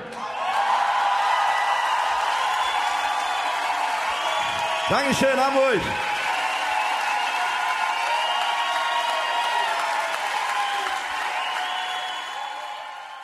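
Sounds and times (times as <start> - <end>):
live concert audience applause: 0.2 - 13.2
speech: 4.9 - 6.1.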